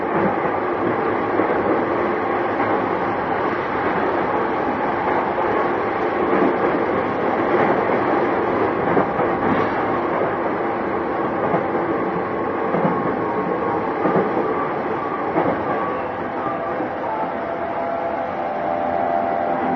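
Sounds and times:
JR East E233 series train running toward Odawara: 0.0 - 19.7
faint whining tones: 14.4 - 19.7.

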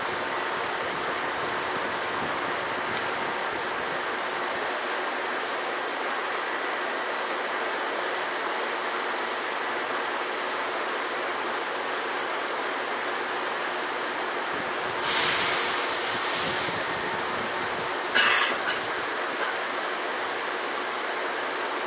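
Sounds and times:
Seibu 2000-series train running along its line: 0.0 - 21.8
brighter hissing bursts: 15.0 - 17.0.

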